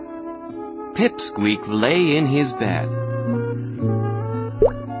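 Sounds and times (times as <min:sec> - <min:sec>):
speech: 0:01.0 - 0:03.4
water drip: 0:04.6 - 0:04.9.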